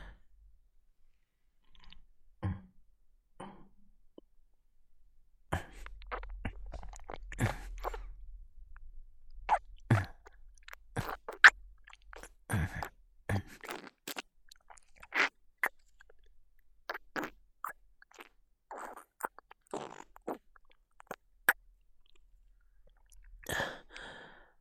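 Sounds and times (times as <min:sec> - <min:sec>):
person slowly drinking water: 0:01.6 - 0:02.7, 0:05.5 - 0:08.2, 0:09.5 - 0:16.3, 0:16.9 - 0:24.1.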